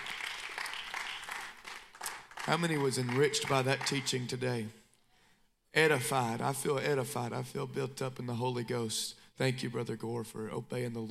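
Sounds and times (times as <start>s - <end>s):
audience hand clapping: 0.0s - 4.7s
speech: 2.4s - 4.8s, 5.8s - 11.0s.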